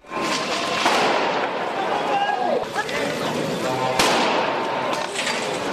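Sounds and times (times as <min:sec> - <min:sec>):
sharp firecracker-like bangs: 0:00.1 - 0:02.1, 0:03.9 - 0:05.6
farmers' street protest crowd shouting: 0:01.3 - 0:05.0.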